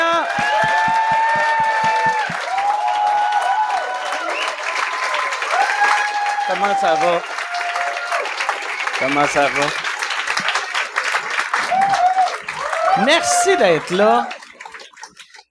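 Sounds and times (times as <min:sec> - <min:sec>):
whoops and raised voices cheering: 0:00.0 - 0:09.0, 0:11.2 - 0:14.6
audience applause: 0:00.0 - 0:15.4
speech: 0:06.6 - 0:07.4, 0:09.0 - 0:09.8, 0:13.0 - 0:14.4.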